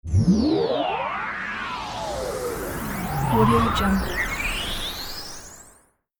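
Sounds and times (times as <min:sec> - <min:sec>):
phasing sweep: 0:00.2 - 0:05.6.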